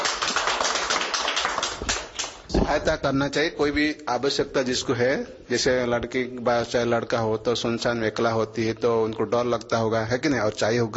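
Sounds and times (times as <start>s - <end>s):
group clapping: 0.0s - 2.5s
speech: 2.7s - 10.9s.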